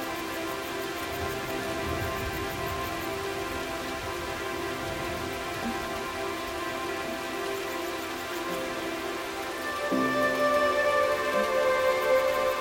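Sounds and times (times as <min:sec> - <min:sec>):
sea: 0:00.0 - 0:12.5.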